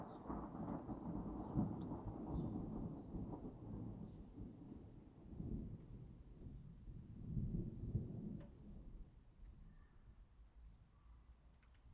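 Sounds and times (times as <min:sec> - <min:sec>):
thunder: 0:00.0 - 0:08.9.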